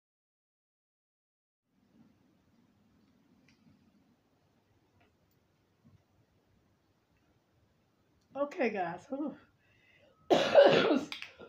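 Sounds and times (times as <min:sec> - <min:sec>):
speech: 0:08.4 - 0:09.5
cough: 0:10.3 - 0:11.1.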